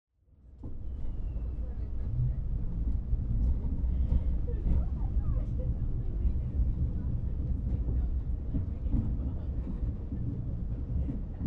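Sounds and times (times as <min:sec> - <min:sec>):
subway train: 0:00.2 - 0:11.4.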